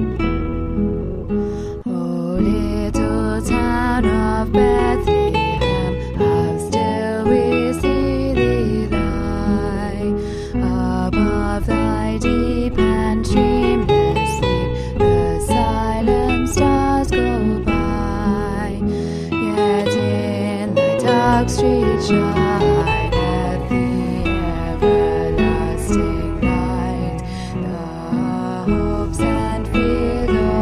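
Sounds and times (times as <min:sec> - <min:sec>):
tenor singing: 0:00.2 - 0:30.5.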